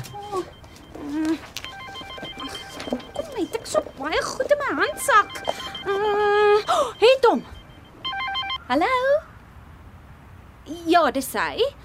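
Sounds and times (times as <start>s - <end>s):
mobile phone ringing with an incoming call: 0.0s - 8.6s
speech: 8.7s - 9.0s, 11.1s - 11.8s.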